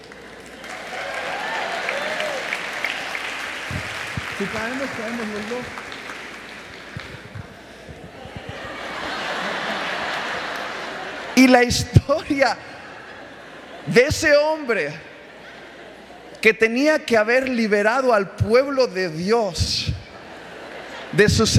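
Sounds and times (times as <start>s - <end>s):
audience applause: 0.0s - 11.4s
laughter: 1.9s - 16.4s, 19.8s - 21.5s
speech: 4.4s - 5.8s, 11.4s - 12.7s, 13.8s - 15.1s, 16.4s - 20.0s, 21.2s - 21.5s.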